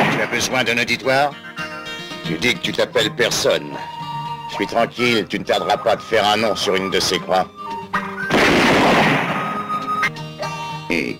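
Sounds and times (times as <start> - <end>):
speech: 0.2 - 1.6, 2.2 - 7.6, 10.9 - 11.1
bomb explosion: 8.3 - 9.8.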